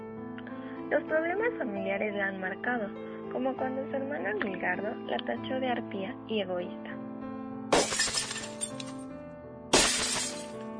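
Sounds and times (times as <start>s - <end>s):
speech: 0.9s - 6.9s
plates shattering: 7.8s - 9.0s, 9.8s - 10.6s.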